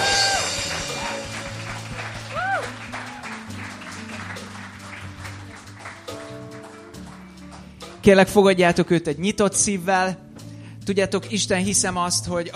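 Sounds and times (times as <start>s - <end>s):
audience applause: 0.0s - 7.7s
speech: 8.0s - 10.2s, 10.9s - 12.5s.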